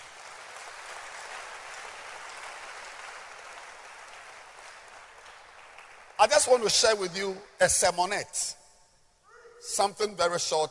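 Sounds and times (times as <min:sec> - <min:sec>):
audience clapping hands: 0:00.0 - 0:06.8
speech: 0:06.2 - 0:08.6, 0:09.6 - 0:10.6.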